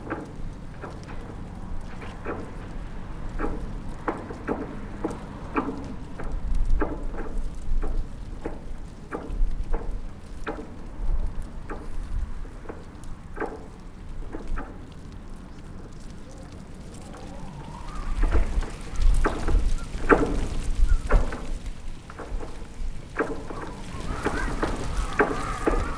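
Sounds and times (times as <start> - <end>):
wind whistling through trees in Arrecife Lanzarote: 0.0 - 25.9.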